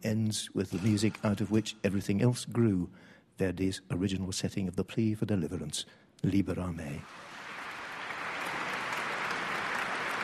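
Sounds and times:
speech: 0:00.0 - 0:07.3
concert audience applause: 0:07.0 - 0:10.2.

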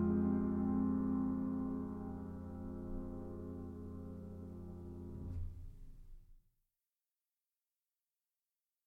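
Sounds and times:
slow piano piece: 0:00.0 - 0:06.0.

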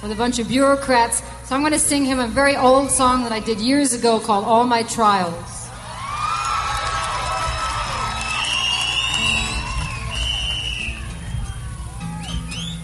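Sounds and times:
speech: 0:00.0 - 0:05.6
audience cheering and clapping: 0:05.7 - 0:12.8
whoops: 0:05.8 - 0:12.8
audience whistles: 0:08.2 - 0:12.8.

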